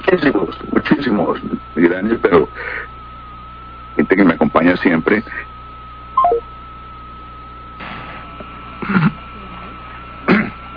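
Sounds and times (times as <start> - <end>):
speech: 0.1 - 2.9, 4.1 - 5.4
telephone line tone: 6.2 - 6.4.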